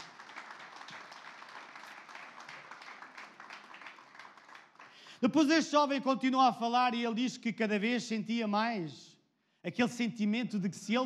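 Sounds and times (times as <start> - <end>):
audience applause: 0.0 - 5.1
speech: 5.2 - 11.0.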